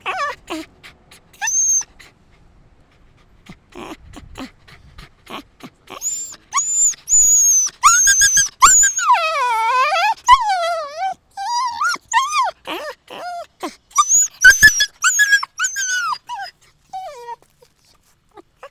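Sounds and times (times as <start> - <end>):
dog yelping: 0.0 - 0.7, 1.4 - 1.9, 5.9 - 17.6.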